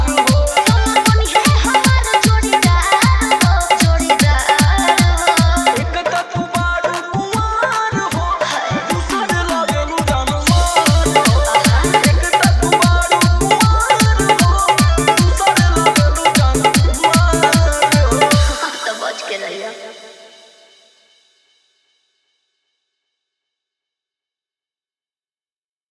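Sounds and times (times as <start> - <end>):
hard dholki bass mix: 0.0 - 19.2.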